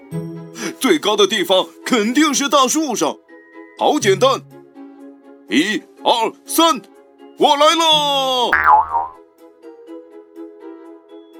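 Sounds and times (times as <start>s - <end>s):
speech: 0.8s - 3.2s, 3.8s - 4.5s, 5.5s - 9.0s
cartoon boing jump sound effect: 8.6s - 9.2s.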